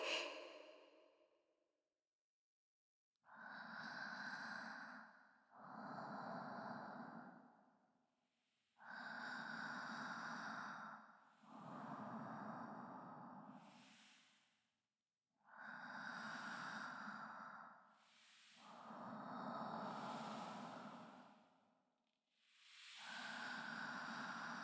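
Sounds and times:
deep breathing through the nose during an abdominal breathing exercise: 3.3s - 7.8s, 8.8s - 14.6s, 15.4s - 24.6s.

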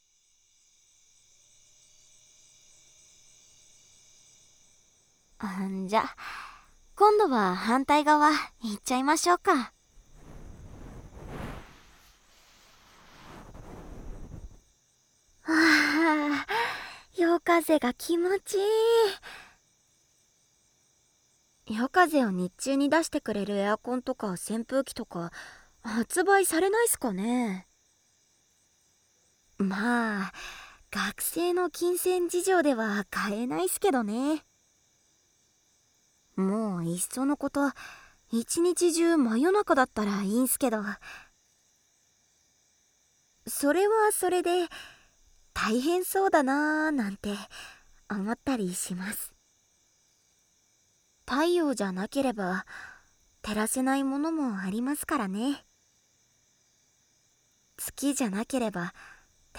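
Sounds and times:
night wind: 0.0s - 59.5s
blowing into the right ear ASMR: 10.1s - 14.6s.

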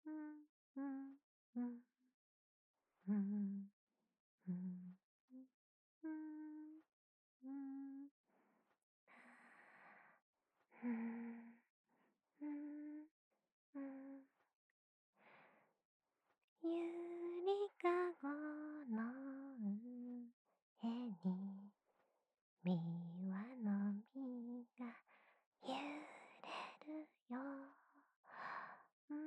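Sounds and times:
lullaby: 0.0s - 1.9s, 3.0s - 3.7s, 4.4s - 8.2s, 12.4s - 13.1s, 13.8s - 14.4s, 16.6s - 21.8s, 22.7s - 25.0s, 25.6s - 29.2s.

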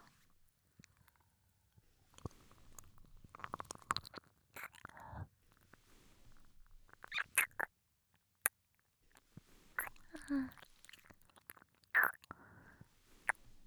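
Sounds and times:
ASMR ear licking sounds: 2.1s - 7.7s, 9.1s - 13.6s.

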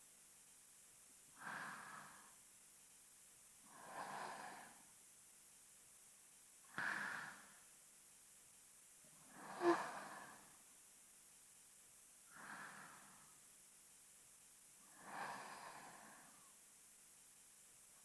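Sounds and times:
sleeping breath: 1.4s - 2.3s, 3.7s - 4.8s, 6.8s - 7.6s, 9.3s - 10.5s, 12.3s - 13.3s, 14.9s - 16.5s.

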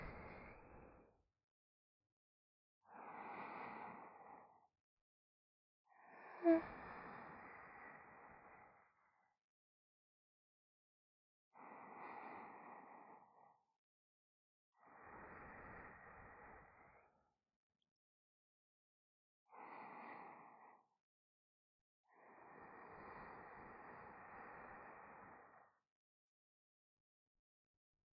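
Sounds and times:
sleeping breath in the left ear: 0.0s - 0.9s, 2.9s - 4.6s, 6.0s - 8.8s, 11.6s - 13.5s, 14.8s - 17.2s, 19.5s - 20.9s, 22.1s - 25.8s.

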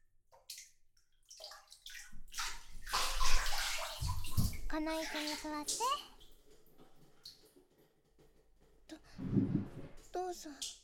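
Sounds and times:
bath water sloshing as someone gets out of the tub: 1.2s - 8.2s
speech: 4.8s - 6.1s, 10.2s - 10.8s.

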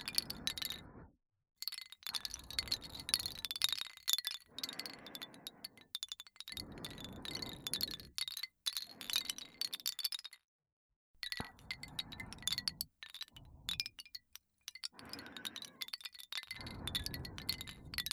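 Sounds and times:
wooden wind chime: 0.0s - 0.8s, 1.6s - 10.4s, 11.2s - 18.1s
person breathing: 0.0s - 1.1s, 2.1s - 3.6s, 4.4s - 8.2s, 11.3s - 14.1s, 14.7s - 18.1s.

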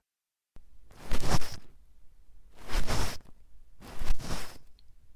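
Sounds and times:
ear cleaning ASMR: 0.6s - 1.8s, 2.5s - 4.9s.

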